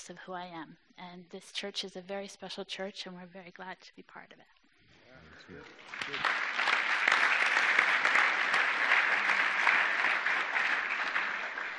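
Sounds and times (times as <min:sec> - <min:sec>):
speech: 0:00.0 - 0:04.6, 0:05.2 - 0:06.9
audience clapping: 0:05.6 - 0:11.7.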